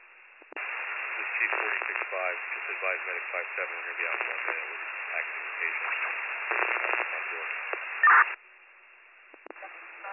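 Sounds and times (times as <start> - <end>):
radio static: 0.5 - 8.4
speech: 1.4 - 8.4.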